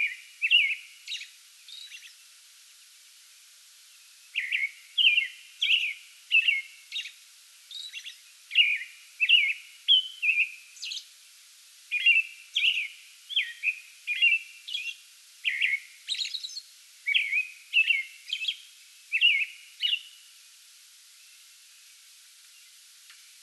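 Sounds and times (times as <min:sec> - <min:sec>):
American robin caroling whistled phrases: 0:00.0 - 0:02.3, 0:04.0 - 0:11.1, 0:11.9 - 0:20.2.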